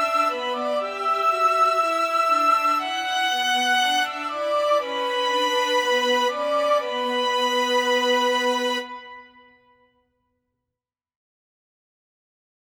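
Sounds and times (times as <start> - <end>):
string quartet playing in B minor: 0.0 - 9.1.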